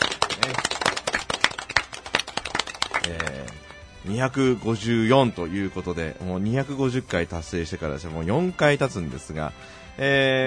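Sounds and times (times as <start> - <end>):
hand clapping: 0.0 - 4.0
speech: 3.0 - 10.4.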